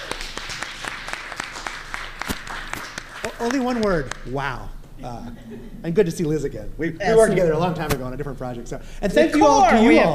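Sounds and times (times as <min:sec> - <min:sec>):
audience applause: 0:00.0 - 0:04.1
speech: 0:03.3 - 0:10.1.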